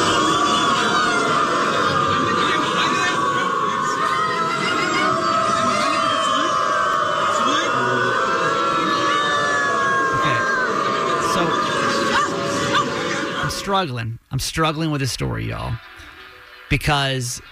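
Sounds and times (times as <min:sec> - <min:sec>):
large crowd of people barking and howling like dogs: 0:00.0 - 0:13.7
speech: 0:13.7 - 0:16.0, 0:16.7 - 0:17.5.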